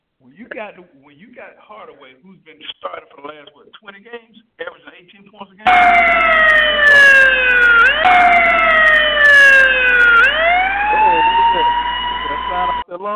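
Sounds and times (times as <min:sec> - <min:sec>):
speech: 0:00.3 - 0:08.6, 0:12.6 - 0:13.1
wailing siren alarm: 0:05.7 - 0:12.9.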